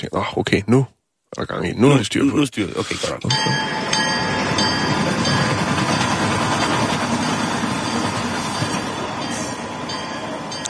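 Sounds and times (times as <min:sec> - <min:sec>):
speech: 0:00.0 - 0:04.7
steam train sound effect: 0:02.8 - 0:10.6.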